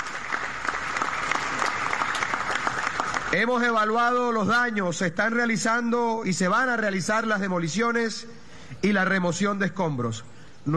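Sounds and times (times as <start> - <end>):
audience applause: 0.0 - 3.4
speech: 3.3 - 10.7.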